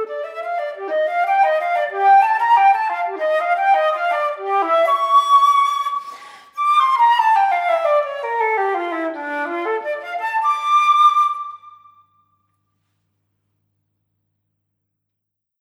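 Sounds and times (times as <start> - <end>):
flute performing a Baroque gigue: 0.0 - 11.9.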